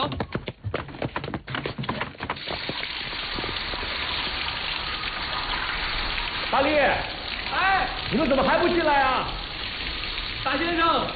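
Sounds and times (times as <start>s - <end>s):
knocks and clatters: 0.0s - 3.6s
shower water running: 2.4s - 11.1s
speech: 6.5s - 9.4s, 10.4s - 11.1s.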